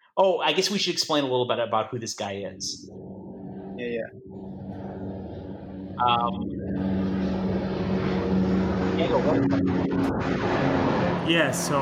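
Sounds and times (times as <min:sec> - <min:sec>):
speech: 0:00.2 - 0:03.1, 0:03.8 - 0:04.5, 0:06.0 - 0:07.0, 0:09.0 - 0:11.7
army helicopter hovering overhead: 0:02.4 - 0:11.7.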